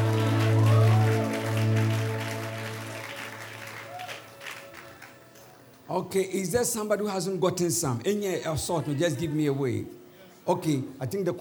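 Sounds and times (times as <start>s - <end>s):
sustained low musical chord: 0.0s - 3.1s
audience clapping: 0.0s - 5.8s
speech: 6.0s - 11.3s.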